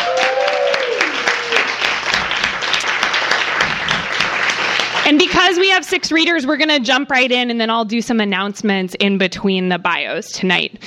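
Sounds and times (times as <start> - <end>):
audience applause: 0.0 - 5.6
speech: 5.1 - 10.8.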